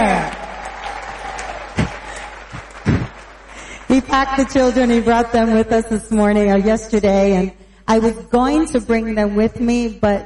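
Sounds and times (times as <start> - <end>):
audience applause: 0.0 - 5.1
speech: 4.0 - 10.2.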